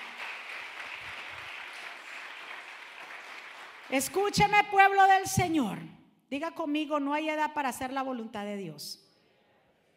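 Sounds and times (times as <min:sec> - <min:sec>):
crowd applauding: 0:00.0 - 0:04.2
speech: 0:03.9 - 0:09.0.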